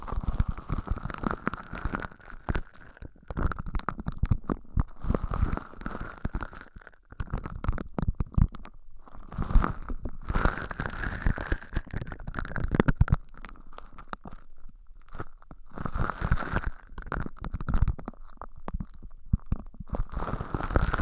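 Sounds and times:
ear massage and cleaning crunchy crackling rubs: 0:00.0 - 0:14.4, 0:15.1 - 0:21.0.

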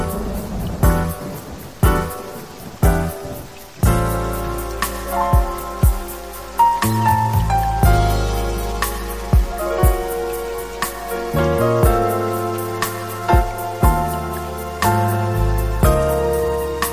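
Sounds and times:
dense rushing sound: 0:00.0 - 0:16.9
smooth jazz with sustained chords and soft bass: 0:00.0 - 0:16.9.

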